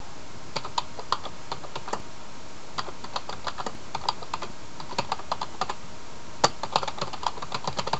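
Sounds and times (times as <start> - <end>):
typing: 0.6 - 2.0, 2.8 - 5.8, 6.4 - 7.9.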